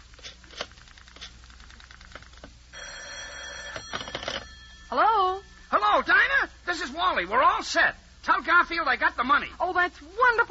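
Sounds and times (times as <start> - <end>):
telephone bell ringing: 2.7 - 5.8
speech: 6.8 - 10.4.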